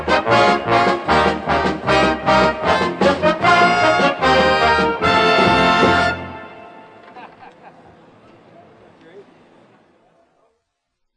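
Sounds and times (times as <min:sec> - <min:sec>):
fanfare: 0:00.0 - 0:07.0
march music: 0:00.0 - 0:07.3
laughter: 0:07.0 - 0:08.4.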